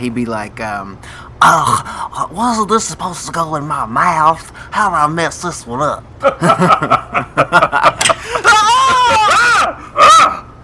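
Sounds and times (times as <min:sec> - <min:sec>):
speech: 0:00.0 - 0:08.2
laughter: 0:06.2 - 0:09.6
person screaming: 0:08.2 - 0:10.5.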